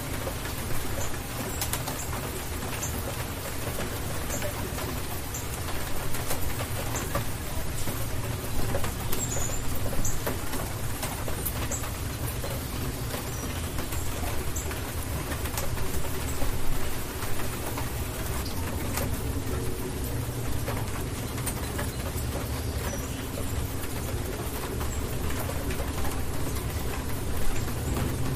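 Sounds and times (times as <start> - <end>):
rainstorm: 0.0 - 28.3.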